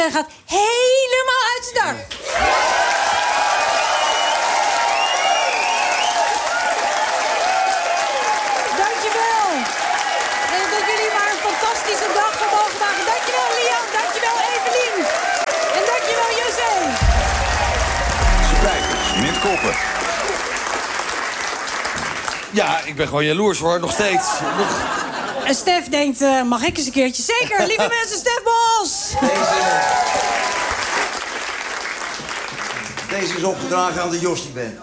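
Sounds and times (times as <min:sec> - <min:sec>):
speech: 0:00.0 - 0:02.7, 0:18.6 - 0:20.1, 0:22.6 - 0:30.5, 0:33.2 - 0:34.8
cheers and whoops: 0:02.2 - 0:12.0, 0:29.1 - 0:30.8
standing audience applause: 0:02.2 - 0:22.7, 0:29.2 - 0:33.5
brief low thump: 0:17.0 - 0:20.8
laughter: 0:24.1 - 0:25.6.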